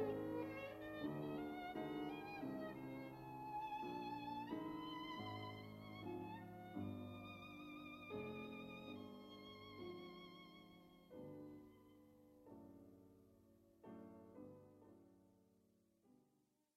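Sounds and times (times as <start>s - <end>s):
violin sonata: 0.0s - 12.0s.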